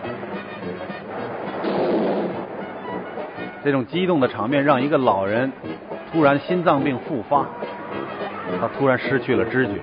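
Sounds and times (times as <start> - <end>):
film car chase: 0.0 - 9.8
speech: 3.6 - 7.7, 8.5 - 9.8.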